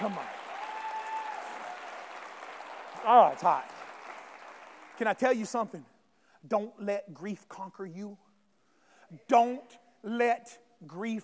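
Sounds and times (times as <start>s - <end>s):
speech: 0.0s - 0.3s, 3.0s - 3.8s, 5.0s - 8.2s, 9.1s - 11.2s
audience clapping hands: 0.0s - 5.6s.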